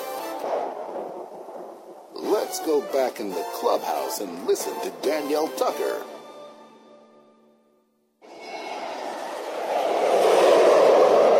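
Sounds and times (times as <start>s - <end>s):
speech: 2.5s - 6.1s
Hawaiian Airlines jet airliner flying past: 8.2s - 11.3s.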